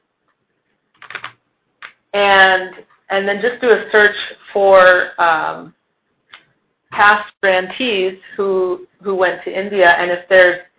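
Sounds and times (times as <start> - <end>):
computer keyboard typing a search into a website: 0.9 - 2.0
speech: 2.1 - 5.8, 6.9 - 10.7.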